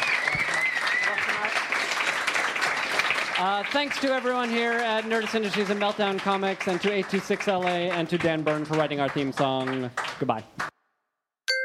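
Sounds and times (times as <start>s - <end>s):
whoops and cheers: 0.0s - 1.5s
crowd applauding: 0.0s - 10.7s
speech: 3.4s - 10.7s.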